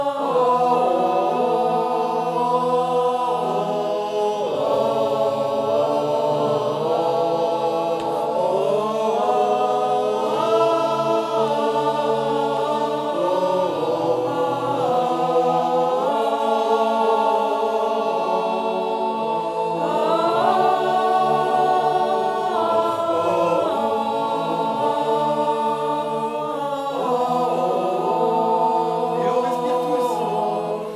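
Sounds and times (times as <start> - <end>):
alto, tenor and bass choir voices singing: 0.0 - 30.9.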